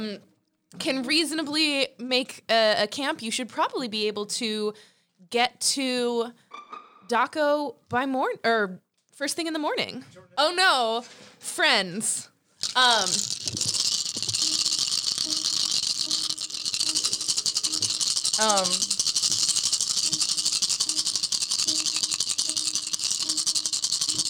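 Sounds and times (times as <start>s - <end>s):
speech: 0.0s - 13.8s, 18.4s - 18.9s
dice rattling: 12.6s - 24.2s.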